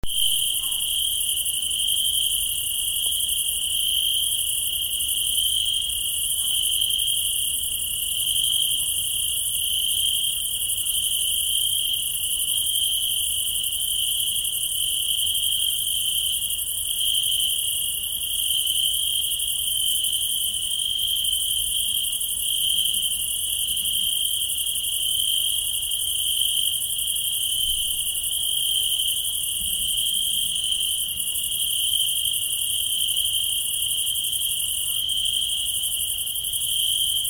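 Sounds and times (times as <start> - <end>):
crickets chirping at night in Tuscany: 0.0 - 37.2.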